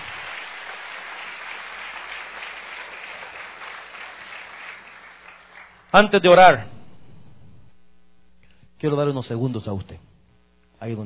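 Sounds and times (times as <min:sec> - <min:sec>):
audience applause: 0:00.0 - 0:06.0
speech: 0:06.0 - 0:06.7, 0:08.8 - 0:10.1, 0:10.8 - 0:11.0.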